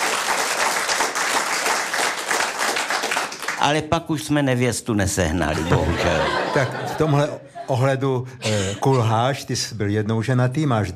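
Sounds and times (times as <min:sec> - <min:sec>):
audience applause: 0:00.0 - 0:03.6
speech: 0:03.6 - 0:10.9
laughter: 0:05.4 - 0:09.3.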